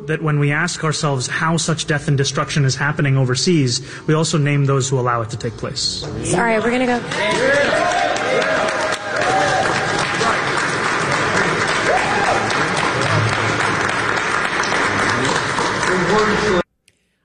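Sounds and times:
speech: 0.0s - 8.8s
audience clapping: 6.8s - 16.7s.

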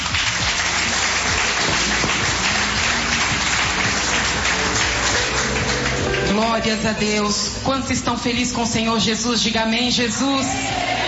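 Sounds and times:
audience applauding: 0.0s - 7.2s
speech: 6.5s - 10.8s.

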